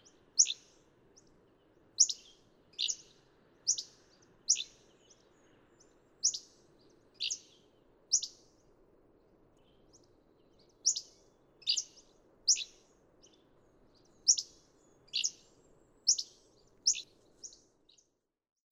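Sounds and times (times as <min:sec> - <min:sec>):
Hammond's flycatcher calling with sharp chips and burry notes: 0:00.0 - 0:00.7, 0:02.0 - 0:04.8, 0:06.2 - 0:06.5, 0:07.2 - 0:08.4, 0:10.8 - 0:12.8, 0:14.1 - 0:15.5, 0:16.1 - 0:17.6.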